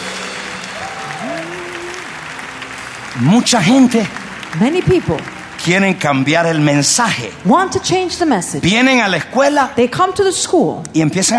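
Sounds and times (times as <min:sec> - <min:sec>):
audience applause: 0:00.0 - 0:07.5
speech: 0:03.2 - 0:11.3.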